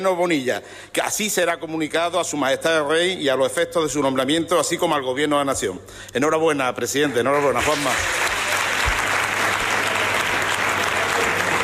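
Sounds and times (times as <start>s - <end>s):
speech: 0.0s - 8.3s
large assembly applauding in a chamber for elected president: 7.0s - 11.6s.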